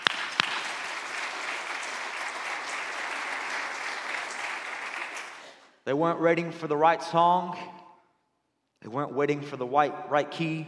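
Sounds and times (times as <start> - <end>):
audience hand clapping: 0.0 - 5.6
speech: 5.9 - 7.8, 8.8 - 10.6.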